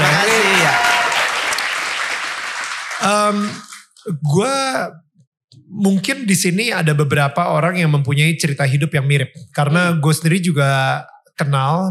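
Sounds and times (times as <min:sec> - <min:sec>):
audience applause: 0:00.0 - 0:03.9
speech: 0:03.1 - 0:05.0, 0:05.6 - 0:11.8.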